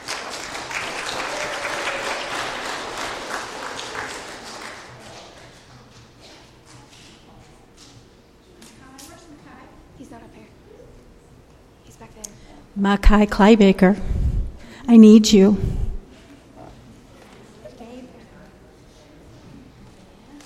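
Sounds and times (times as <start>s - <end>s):
audience applause: 0.0s - 5.8s
speech: 12.8s - 14.1s, 14.9s - 15.8s.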